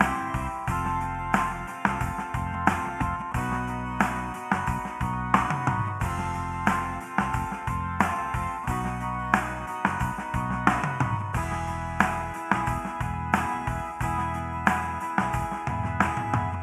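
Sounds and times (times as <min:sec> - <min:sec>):
acoustic rock lo-fi music: 0:00.0 - 0:16.6.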